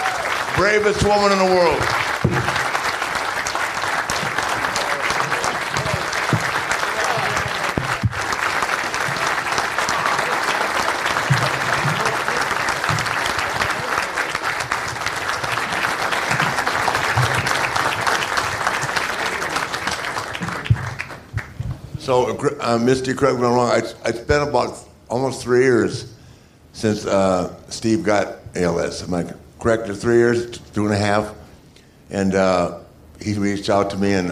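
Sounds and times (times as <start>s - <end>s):
audience applause: 0.0s - 21.6s
speech: 0.6s - 2.6s, 22.1s - 26.1s, 26.8s - 31.4s, 32.1s - 34.2s.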